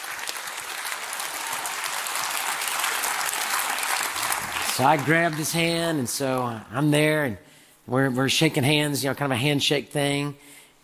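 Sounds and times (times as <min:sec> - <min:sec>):
audience cheering and applause: 0:00.0 - 0:05.7
speech: 0:04.8 - 0:10.5.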